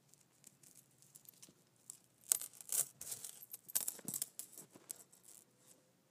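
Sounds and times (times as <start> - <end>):
metal chain clinking: 0.7 - 5.3.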